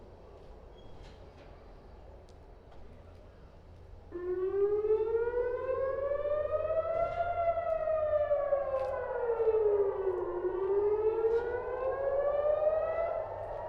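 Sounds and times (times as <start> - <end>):
siren rising and falling: 4.2 - 13.6.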